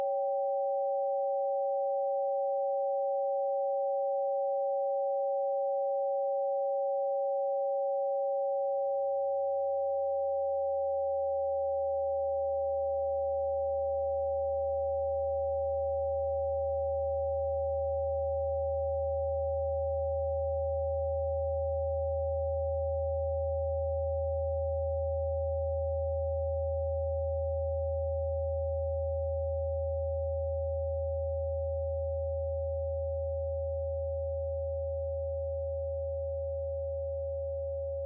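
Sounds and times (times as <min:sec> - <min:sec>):
sine wave quartet: 0:00.0 - 0:38.0.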